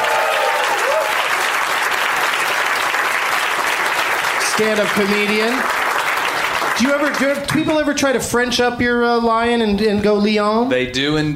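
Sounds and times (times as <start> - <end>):
crowd applauding for a guest: 0.0 - 7.8
speech: 4.6 - 5.8, 6.8 - 11.3.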